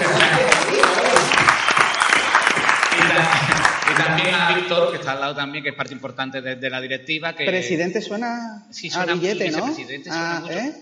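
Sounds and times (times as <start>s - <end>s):
applause: 0.0s - 4.9s
speech: 4.7s - 10.7s.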